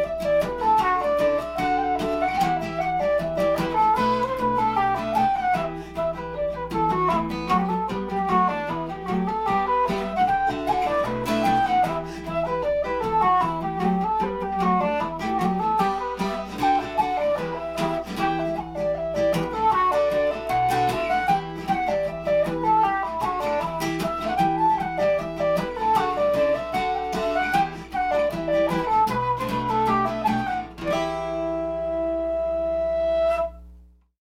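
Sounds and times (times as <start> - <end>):
flute playing: 0.0 - 33.7.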